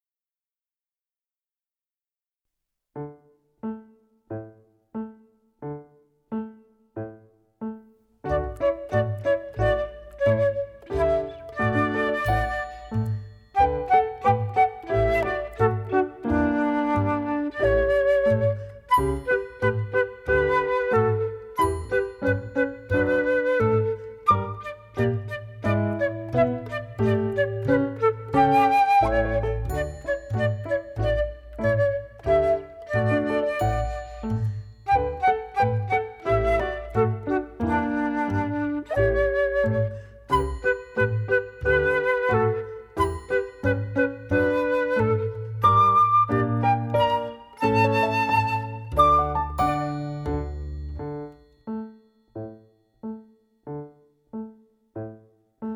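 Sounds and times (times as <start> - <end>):
orchestral piece: 8.3 - 51.4.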